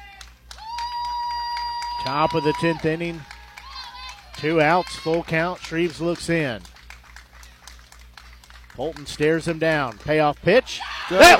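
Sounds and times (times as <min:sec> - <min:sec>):
crowd applause at a baseball game: 0:00.2 - 0:10.2, 0:11.1 - 0:11.3
speech: 0:02.0 - 0:03.3, 0:04.4 - 0:06.7, 0:08.8 - 0:11.3.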